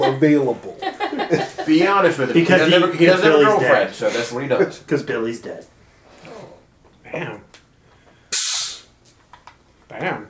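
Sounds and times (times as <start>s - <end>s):
laughter: 0.0s - 4.2s
speech: 0.1s - 5.7s, 7.1s - 7.4s, 10.0s - 10.2s
SodaStream carbonating water: 8.3s - 9.0s.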